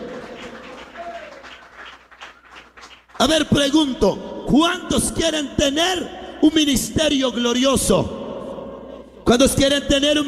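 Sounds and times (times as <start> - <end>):
audience applause: 0.0 - 3.2
speech: 3.2 - 8.2, 9.3 - 10.2.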